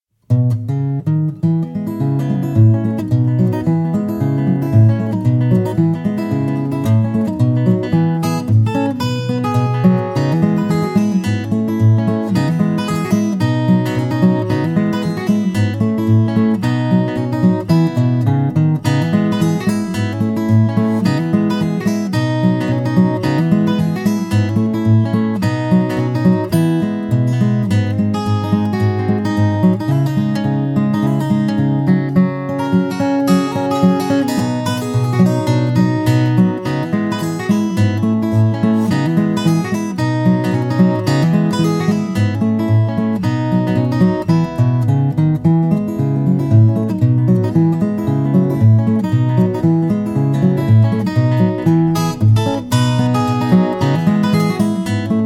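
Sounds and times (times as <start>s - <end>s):
guitar: 0.2s - 55.2s.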